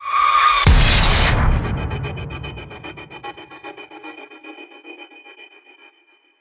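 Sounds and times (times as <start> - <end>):
rising tension build: 0.5 - 3.6
impact hit: 0.6 - 3.6.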